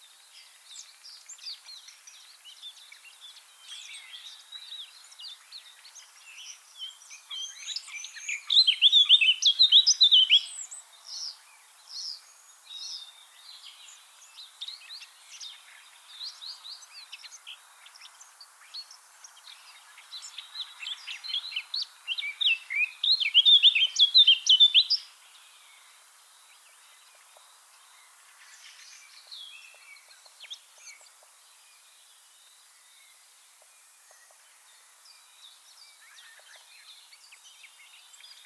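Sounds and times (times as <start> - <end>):
other small birds chirping and warbling: 0.0 - 38.4
Eurasian blackcap singing: 20.4 - 25.1.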